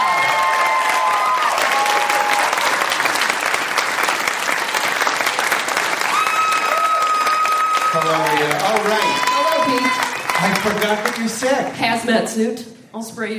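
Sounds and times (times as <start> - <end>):
audience whoops and cheers: 0.0 - 2.8, 6.0 - 10.7
audience applause: 0.0 - 11.8
speech: 8.1 - 13.3.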